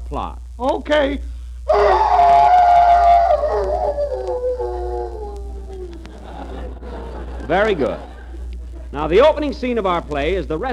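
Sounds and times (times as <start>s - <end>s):
speech: 0.1s - 2.1s, 7.5s - 8.1s, 8.9s - 10.7s
low hum: 1.2s - 10.7s
man imitating a hound's howl: 1.7s - 6.2s
laughter: 1.9s - 9.5s.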